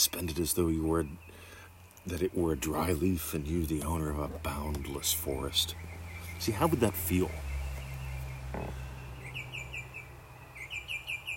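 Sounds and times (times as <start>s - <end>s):
speech: 0.0s - 1.4s, 2.0s - 7.5s, 8.5s - 8.8s
songbirds singing: 0.0s - 11.3s.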